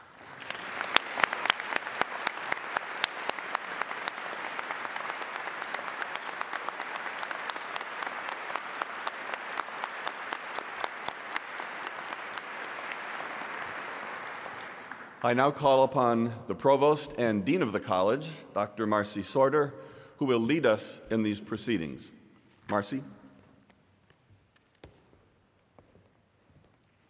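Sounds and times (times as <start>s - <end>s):
audience applause: 0.0s - 15.2s
speech: 15.2s - 23.2s.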